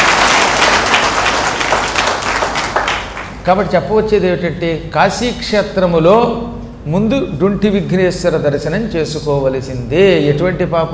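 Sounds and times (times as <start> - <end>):
audience applause in honour of great poets: 0.0 - 3.4
speech: 3.4 - 10.9.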